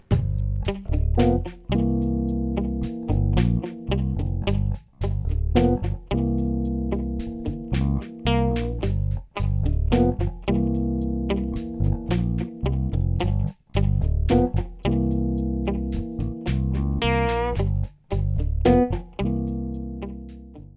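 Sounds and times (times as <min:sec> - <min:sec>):
sixteenth-note funk ballad: 0:00.1 - 0:20.7.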